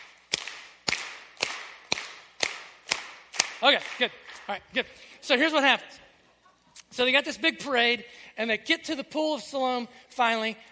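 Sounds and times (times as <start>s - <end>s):
group clapping on each beat: 0.0s - 4.6s
speech: 3.6s - 6.0s, 6.9s - 10.6s.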